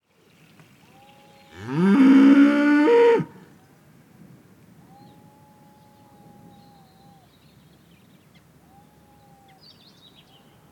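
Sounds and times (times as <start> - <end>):
cow mooing: 1.0 - 3.3.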